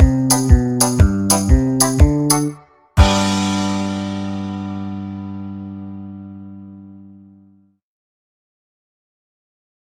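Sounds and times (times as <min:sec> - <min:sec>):
banjo backing track in the key of G: 0:00.0 - 0:06.2.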